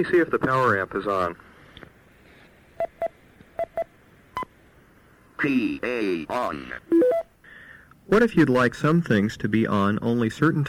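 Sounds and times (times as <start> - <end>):
speech: 0.0 - 1.5, 5.4 - 7.2, 8.1 - 10.6
hiss: 0.0 - 10.6
DTMF touch-tone command beeps: 2.8 - 4.5, 6.9 - 7.3.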